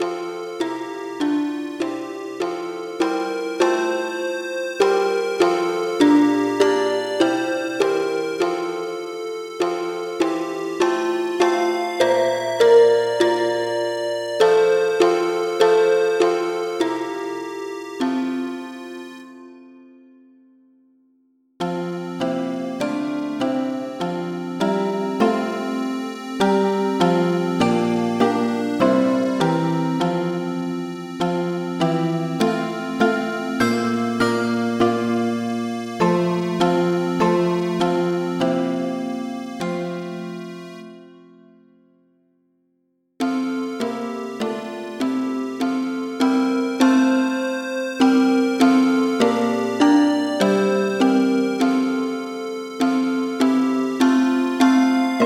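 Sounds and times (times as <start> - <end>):
multi-instrument music: 0.0 - 20.8, 21.6 - 42.2, 43.2 - 55.2.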